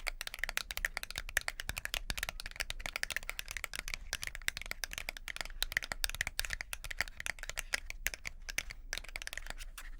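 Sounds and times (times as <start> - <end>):
makeup being applied with brushing and tapping: 0.1 - 9.8.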